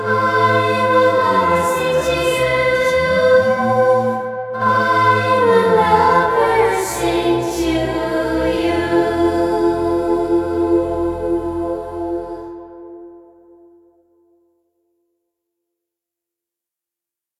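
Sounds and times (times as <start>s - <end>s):
choir singing: 0.0s - 13.7s.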